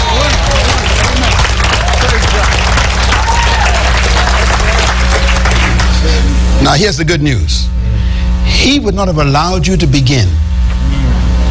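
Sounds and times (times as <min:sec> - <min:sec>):
audience clapping: 0:00.0 - 0:06.3
speech: 0:06.7 - 0:07.8, 0:08.6 - 0:11.0.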